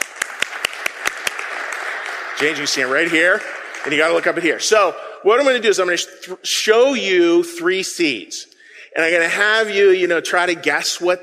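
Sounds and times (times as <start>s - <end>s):
round of applause: 0.0s - 4.9s
speech: 2.4s - 11.2s.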